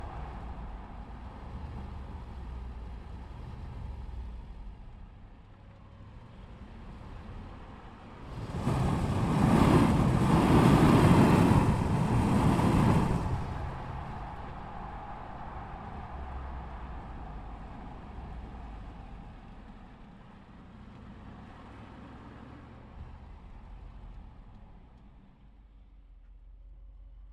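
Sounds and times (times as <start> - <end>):
Range Rover SDV8 exhaust while starting, driving, circling and stopping: 0.0 - 5.3, 8.2 - 22.4.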